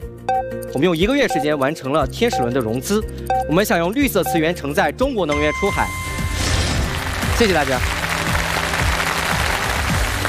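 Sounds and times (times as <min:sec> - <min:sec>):
speech: 0:00.3 - 0:06.1, 0:07.4 - 0:08.0
audience applause at a startup pitch event: 0:06.8 - 0:10.2.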